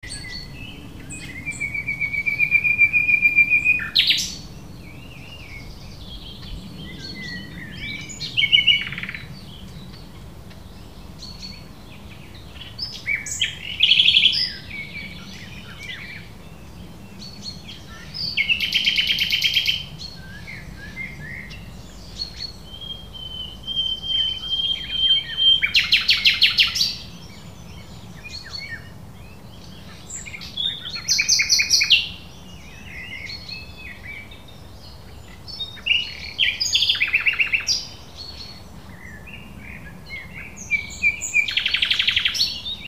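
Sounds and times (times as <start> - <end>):
Luscinia megarhynchos singing: 0.0 - 42.8.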